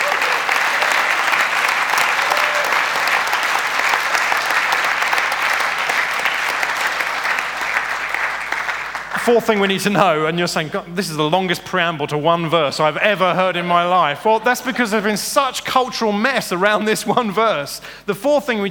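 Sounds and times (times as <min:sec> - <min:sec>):
audience applause: 0:00.0 - 0:09.7
speech: 0:09.3 - 0:18.6.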